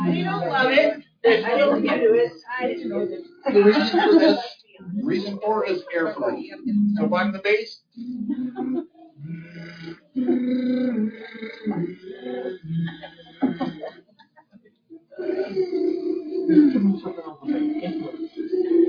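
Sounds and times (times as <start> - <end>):
laughter: 0.0 - 2.1, 3.4 - 6.5, 8.0 - 9.2, 10.2 - 18.8
speech: 0.1 - 14.0, 15.2 - 18.8
voice doing lip trills as a vocal warm-up exercise: 8.0 - 13.9, 15.0 - 18.8.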